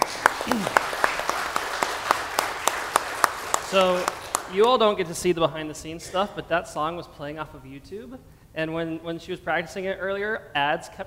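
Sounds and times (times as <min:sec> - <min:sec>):
laughter: 0:00.0 - 0:01.4
small audience clapping: 0:00.0 - 0:05.0
person whooping: 0:00.4 - 0:01.0
speech: 0:03.7 - 0:11.0.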